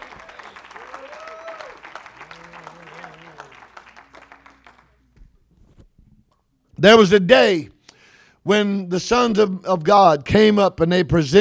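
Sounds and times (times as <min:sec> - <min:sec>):
audience clapping hands: 0:00.0 - 0:05.2
speech: 0:06.8 - 0:07.7, 0:08.4 - 0:11.3.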